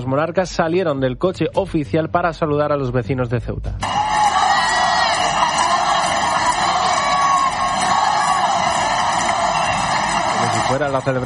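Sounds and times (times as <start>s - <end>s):
speech: 0.0s - 4.0s, 10.7s - 11.2s
crowd cheering and shouting: 3.8s - 11.2s.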